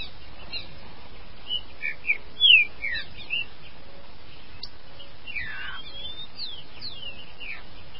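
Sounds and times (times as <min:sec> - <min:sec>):
green-winged saltator song: 0:01.4 - 0:03.6, 0:04.6 - 0:07.9.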